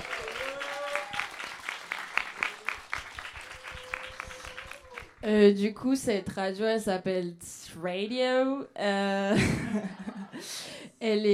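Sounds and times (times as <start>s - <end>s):
audience applause: 0.0s - 5.2s
speech: 5.2s - 11.3s.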